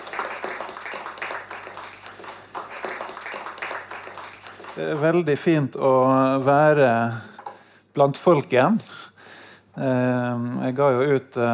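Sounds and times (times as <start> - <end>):
warm audience applause: 0.0 - 5.4
speech: 4.8 - 7.3, 8.0 - 9.0, 9.8 - 11.5.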